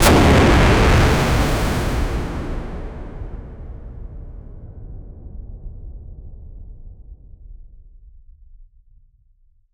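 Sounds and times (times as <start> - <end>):
explosion: 0.0 - 6.0.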